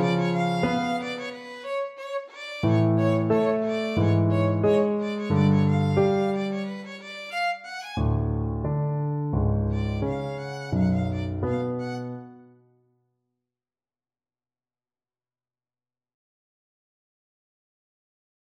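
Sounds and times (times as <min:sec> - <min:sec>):
violin playing Romanian folk dance: 0:00.0 - 0:08.4, 0:09.7 - 0:12.4.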